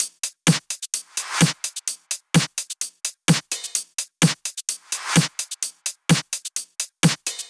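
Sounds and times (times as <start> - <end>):
drums: 0.0 - 7.4.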